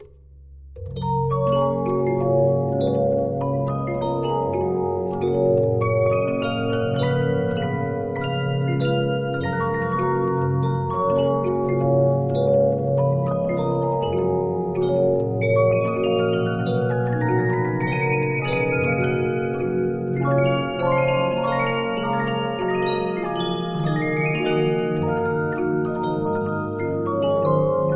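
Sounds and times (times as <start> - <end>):
Regina 15-inch disc music box: 0.8 - 27.9.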